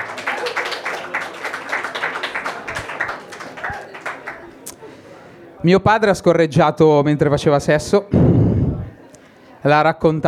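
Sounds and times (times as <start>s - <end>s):
audience applause: 0.0s - 4.7s
speech: 5.6s - 8.4s, 9.6s - 10.2s.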